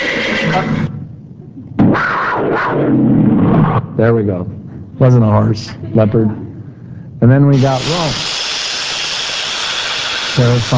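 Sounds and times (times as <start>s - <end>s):
speech: 0.5s - 0.8s, 1.9s - 6.4s, 7.2s - 8.4s, 10.4s - 10.7s
serpent hissing sound effect: 7.6s - 10.7s.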